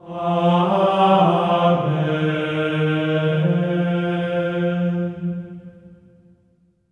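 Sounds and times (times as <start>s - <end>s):
choir singing amen in F4: 0.0s - 5.7s.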